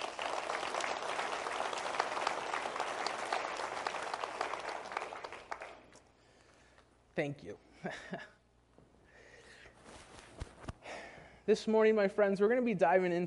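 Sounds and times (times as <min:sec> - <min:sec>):
audience applause: 0:00.0 - 0:06.0
speech: 0:07.2 - 0:08.4, 0:11.5 - 0:13.2.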